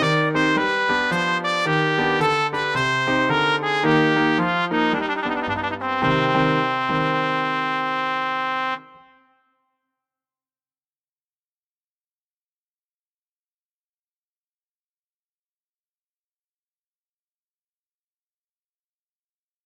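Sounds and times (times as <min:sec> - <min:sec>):
trumpet: 0:00.0 - 0:09.7.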